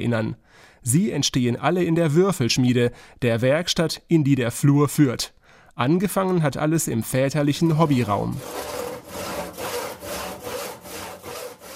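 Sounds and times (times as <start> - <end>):
speech: 0.0 - 8.8
hand saw cutting wood in a workshop: 7.7 - 11.7.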